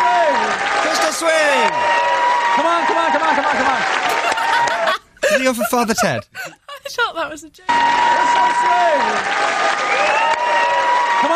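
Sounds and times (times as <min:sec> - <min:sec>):
voice above applause: 0:00.0 - 0:04.9, 0:07.8 - 0:11.3
TV show audience cheering and clapping for a band's performance: 0:00.0 - 0:05.1, 0:07.7 - 0:11.3
laughter: 0:02.6 - 0:07.1
speech: 0:05.4 - 0:10.3.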